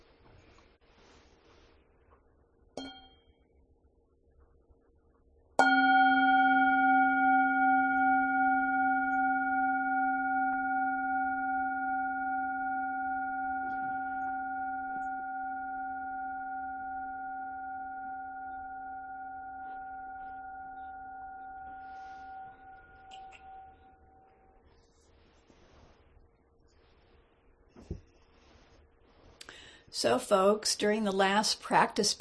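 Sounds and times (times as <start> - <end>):
meditation bell ringing: 5.6 - 24.3
speech: 29.9 - 32.1.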